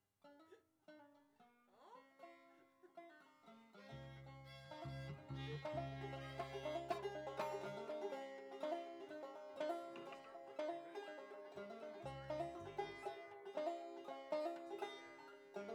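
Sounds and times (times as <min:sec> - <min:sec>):
instrument tuning: 0:03.9 - 0:15.6.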